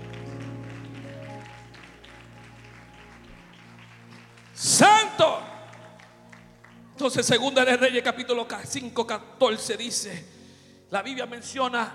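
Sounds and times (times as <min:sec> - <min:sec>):
sustained keyboard chord: 0:00.0 - 0:04.2
audience applause: 0:00.0 - 0:06.8
speech: 0:07.0 - 0:11.9.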